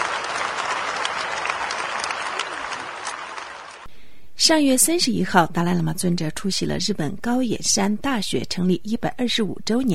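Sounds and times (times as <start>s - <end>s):
audience applause: 0.0s - 3.9s
speech: 4.4s - 9.9s.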